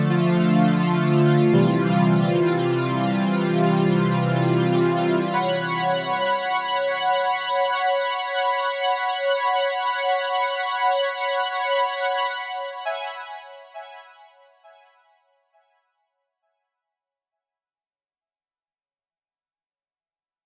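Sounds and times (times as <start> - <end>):
strings: 0.1 - 14.8.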